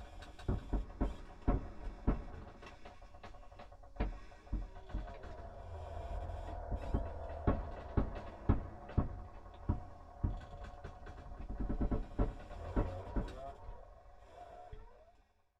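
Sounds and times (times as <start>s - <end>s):
wood creaks in a haunted house: 0.0s - 15.3s
haunted house ambience: 0.0s - 15.4s.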